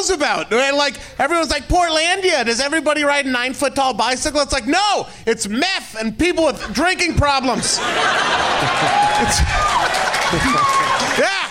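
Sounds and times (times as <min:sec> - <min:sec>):
speech: 0:00.0 - 0:11.4
laughter: 0:06.5 - 0:11.5
audience applause: 0:07.9 - 0:11.5.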